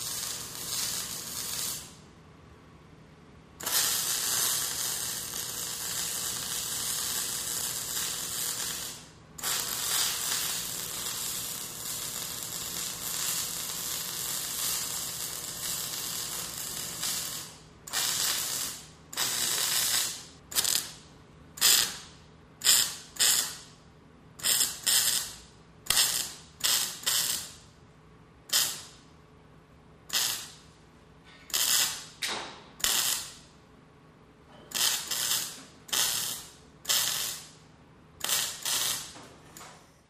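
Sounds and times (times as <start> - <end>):
welding: 0.0 - 2.0, 3.6 - 23.8, 24.4 - 27.6, 28.5 - 29.0, 30.1 - 30.6, 31.5 - 33.4, 34.7 - 37.6, 38.2 - 39.2.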